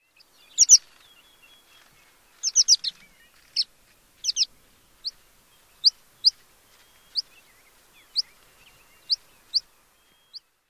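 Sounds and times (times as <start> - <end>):
American Pipit calls: 0.5 - 1.0, 2.4 - 5.2, 8.0 - 10.5.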